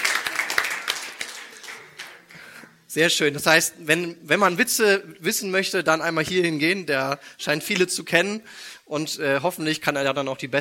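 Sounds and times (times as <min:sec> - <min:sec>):
applause at a live joke event: 0:00.0 - 0:02.6
speech: 0:02.9 - 0:10.6.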